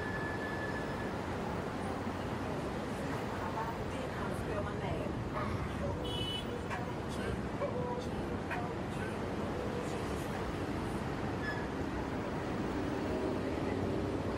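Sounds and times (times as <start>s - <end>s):
heavy traffic rumble on the Brooklyn Bridge: 0.0s - 14.3s
clinks and squeaks: 11.4s - 11.8s.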